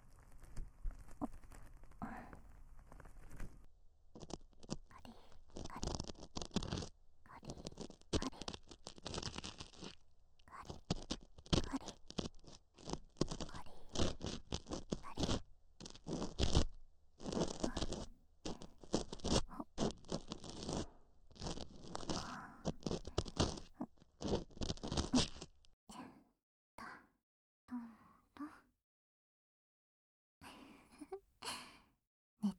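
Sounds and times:
ear pick scraping inside the ear: 0.0s - 25.6s.

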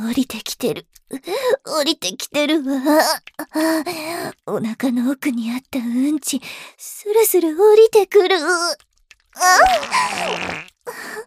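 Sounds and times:
speech: 0.0s - 11.2s
fart: 9.5s - 10.8s.

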